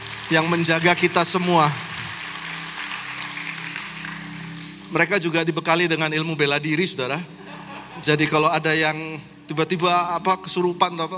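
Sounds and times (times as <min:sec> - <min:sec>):
crowd clapping: 0:00.0 - 0:05.3
speech: 0:00.3 - 0:01.9, 0:04.9 - 0:07.4, 0:08.0 - 0:11.1
laughter: 0:07.4 - 0:08.4.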